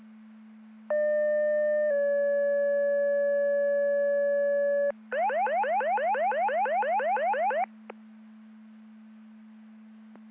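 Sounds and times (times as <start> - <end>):
siren: 0.9 - 7.8.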